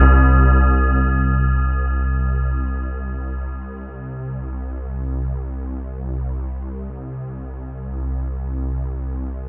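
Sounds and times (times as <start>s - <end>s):
synth line: 0.0s - 6.2s.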